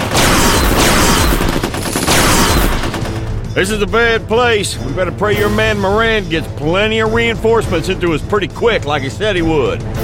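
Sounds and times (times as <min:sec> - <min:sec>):
heavy gunfire in a jungle firefight: 0:00.0 - 0:03.4
speech: 0:03.6 - 0:10.0.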